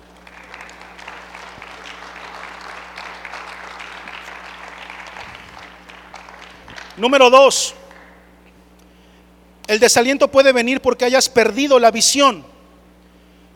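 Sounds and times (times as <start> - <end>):
audience clapping: 0.0 - 8.3
speech: 7.0 - 7.8, 9.7 - 12.5.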